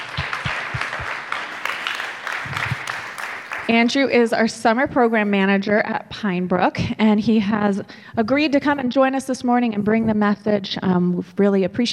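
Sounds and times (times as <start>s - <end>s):
audience applause: 0.0s - 3.7s
speech: 3.7s - 11.9s.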